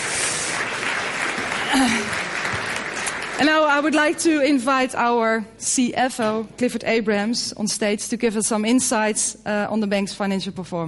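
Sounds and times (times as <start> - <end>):
audience applause: 0.0 - 3.4
speech: 1.7 - 2.2, 3.4 - 10.8.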